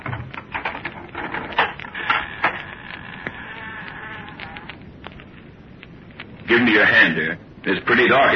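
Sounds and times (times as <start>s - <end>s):
door hinges creaking: 0.0s - 5.3s
speech: 6.5s - 8.3s.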